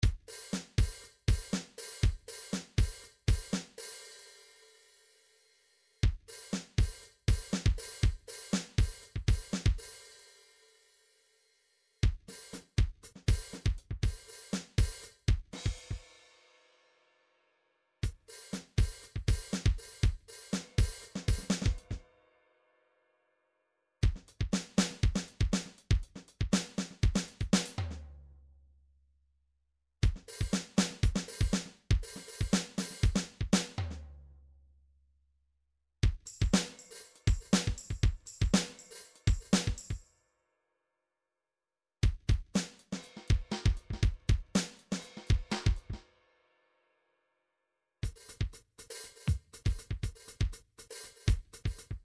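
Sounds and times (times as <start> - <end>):
808 drum pattern: 0.0 - 3.8, 6.0 - 9.9, 12.0 - 16.0, 18.0 - 22.0, 24.0 - 27.8, 30.0 - 33.8, 36.0 - 40.0, 42.0 - 46.0, 48.0 - 52.0.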